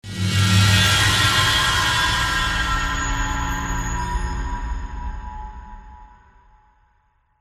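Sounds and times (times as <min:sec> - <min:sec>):
scary scraping: 0:00.0 - 0:05.8.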